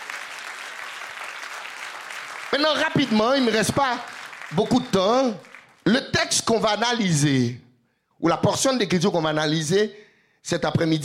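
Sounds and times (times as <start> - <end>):
audience applause: 0.0 - 5.8
speech: 2.5 - 7.6, 8.2 - 11.0.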